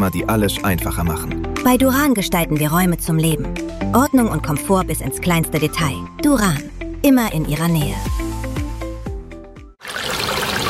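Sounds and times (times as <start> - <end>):
speech: 0.0 - 8.2
water being poured: 9.8 - 10.6.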